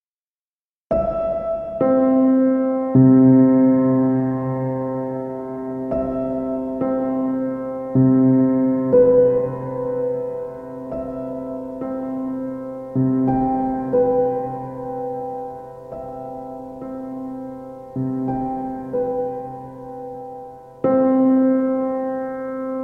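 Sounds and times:
piano: 0:00.9 - 0:22.8.

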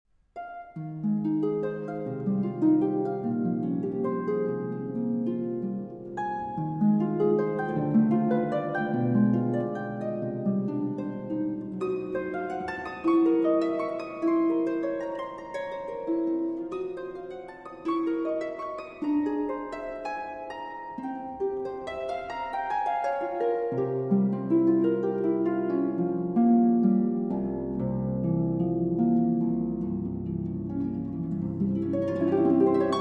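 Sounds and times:
impromptu for harp: 0:00.4 - 0:32.9.

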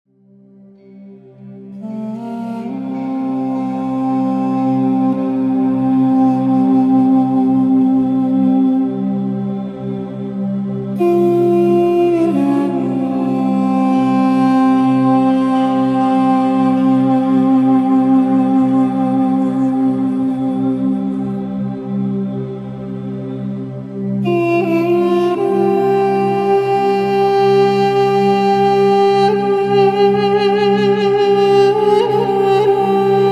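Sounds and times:
mystical flute: 0:00.2 - 0:33.3.

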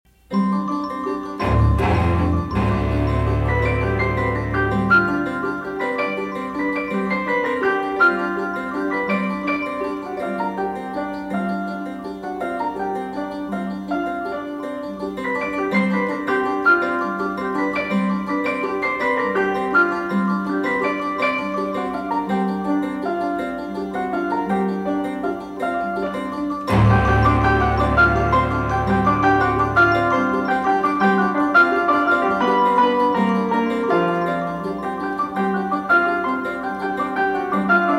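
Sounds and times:
gamelan allegro: 0:00.1 - 0:37.9.

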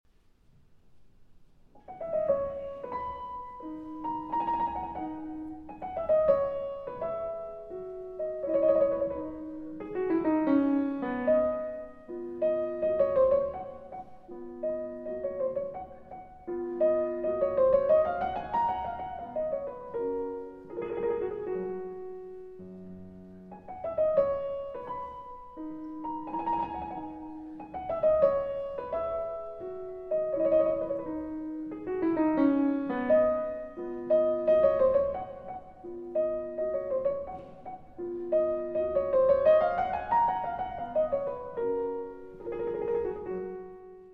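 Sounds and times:
keyboard sonata: 0:01.6 - 0:44.1.

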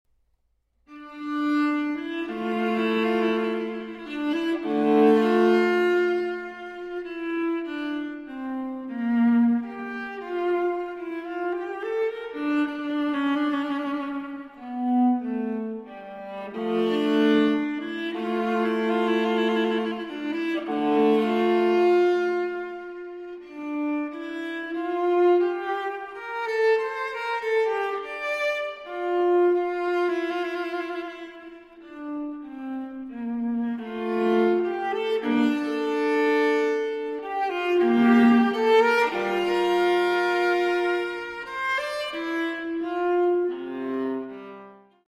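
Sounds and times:
viola solo piece: 0:00.9 - 0:45.0.

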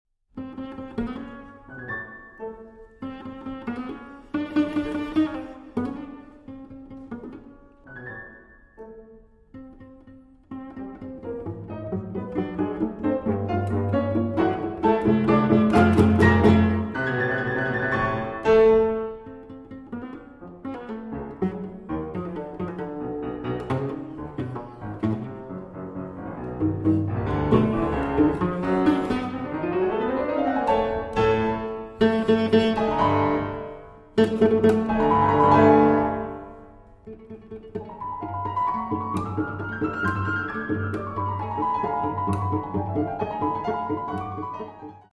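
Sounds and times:
cello pizzicato scherzo: 0:00.3 - 0:45.1.

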